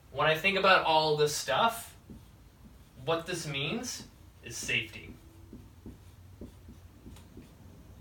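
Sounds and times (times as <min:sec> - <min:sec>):
speech: 0:00.2 - 0:01.9, 0:03.1 - 0:05.2
pen strokes drawing a giant circle: 0:02.0 - 0:07.7.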